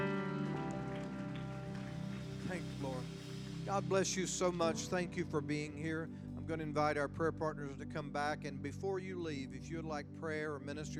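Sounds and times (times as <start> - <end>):
audience clapping: 0.0 - 4.6
speech: 2.5 - 10.9.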